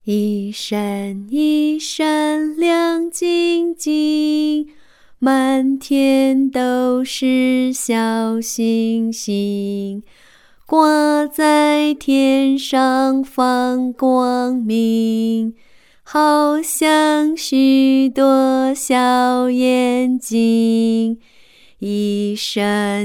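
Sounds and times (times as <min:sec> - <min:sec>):
Chinese woman singing a song: 0:00.0 - 0:23.0.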